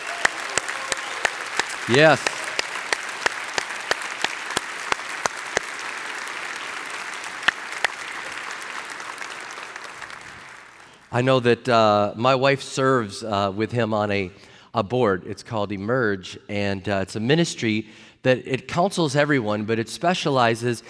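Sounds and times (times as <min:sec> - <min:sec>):
audience applause: 0:00.0 - 0:11.1
speech: 0:01.9 - 0:02.4, 0:11.2 - 0:20.8.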